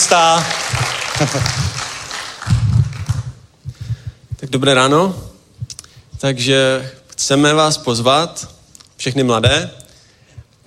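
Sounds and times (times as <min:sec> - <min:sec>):
audience applause: 0:00.0 - 0:03.4
speech: 0:00.1 - 0:01.8, 0:04.5 - 0:05.3, 0:06.2 - 0:09.8
low thumps: 0:02.4 - 0:04.6.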